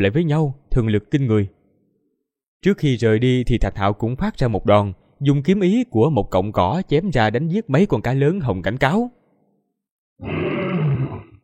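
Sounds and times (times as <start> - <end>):
speech: 0.0 - 1.6, 2.6 - 9.2, 10.2 - 10.6
roar: 10.2 - 11.4.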